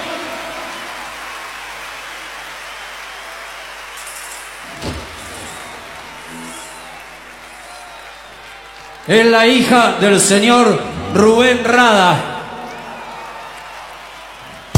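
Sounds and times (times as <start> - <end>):
audience applause: 0.0 - 14.7
thump: 4.7 - 5.6
speech: 9.1 - 12.3.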